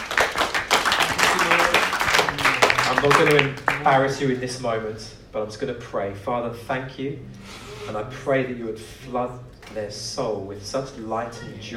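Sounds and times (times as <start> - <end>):
audience applause: 0.0 - 4.4
speech: 3.0 - 11.7.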